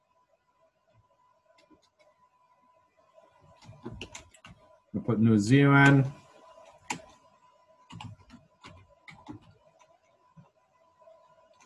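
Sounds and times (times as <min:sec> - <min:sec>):
computer keyboard typing: 0:03.6 - 0:04.6, 0:06.7 - 0:07.2, 0:07.9 - 0:10.0
speech: 0:05.1 - 0:06.2.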